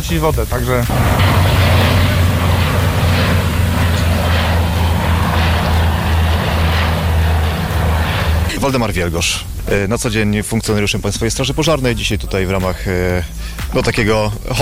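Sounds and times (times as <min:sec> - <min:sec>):
speech: 0:00.0 - 0:01.5, 0:08.6 - 0:14.6
firefighting aircraft engines droning: 0:00.8 - 0:09.6.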